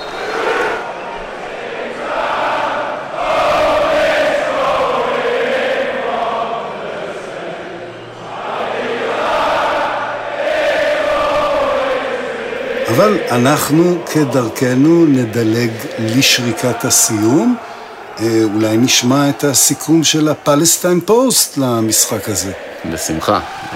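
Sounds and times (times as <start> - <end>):
English football crowd chanting: 0.0 - 23.7
speech: 13.0 - 23.7.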